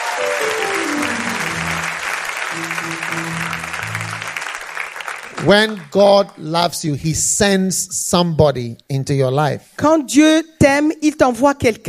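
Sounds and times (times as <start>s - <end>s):
sustained musical tones: 0.0s - 4.8s
large audience clapping: 0.0s - 6.3s
speech: 0.2s - 0.7s, 5.4s - 11.8s.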